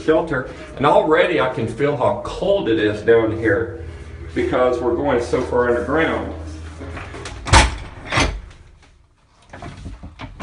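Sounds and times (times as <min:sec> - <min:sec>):
speech: 0:00.0 - 0:06.4
low hum: 0:00.0 - 0:08.9
heavy underground shelter door closing: 0:03.9 - 0:08.8.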